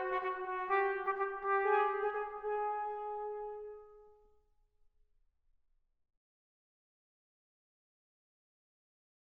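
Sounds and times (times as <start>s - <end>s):
capriccio for two trumpets: 0.0s - 4.0s.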